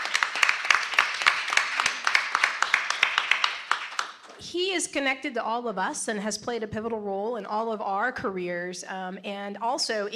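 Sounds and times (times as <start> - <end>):
audience applause at the BEYA conference for a general: 0.0 - 4.3
speech: 4.5 - 10.1.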